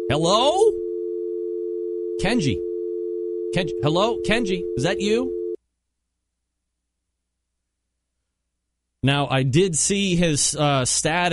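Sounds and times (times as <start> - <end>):
Skype call dialling tone: 0.0 - 5.6
speech: 0.1 - 0.8, 2.2 - 2.6, 3.6 - 5.3, 9.0 - 11.3.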